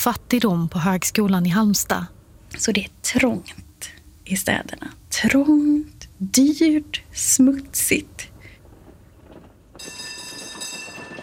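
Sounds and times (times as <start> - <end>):
speech: 0.0 - 8.3
horse-drawn tram on rails: 6.4 - 11.2.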